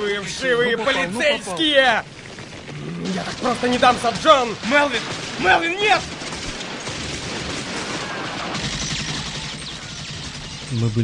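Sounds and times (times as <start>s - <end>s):
speech: 0.0s - 2.2s, 2.8s - 6.2s, 10.7s - 11.0s
gunfire: 3.0s - 10.9s
bullets whistling overhead: 7.8s - 11.0s.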